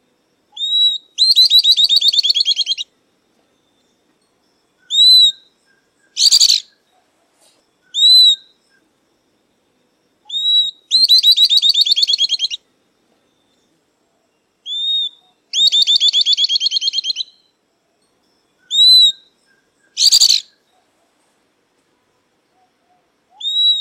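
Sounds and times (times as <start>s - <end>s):
southern beardless-tyrannulet song: 0.6s - 2.9s, 4.8s - 6.8s, 7.4s - 8.8s, 10.3s - 12.6s, 14.7s - 17.5s, 18.6s - 20.6s, 23.3s - 23.7s.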